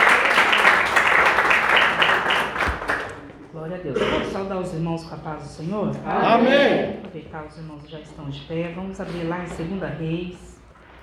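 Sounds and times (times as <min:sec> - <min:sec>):
audience applause: 0:00.0 - 0:03.5
speech: 0:04.5 - 0:10.6.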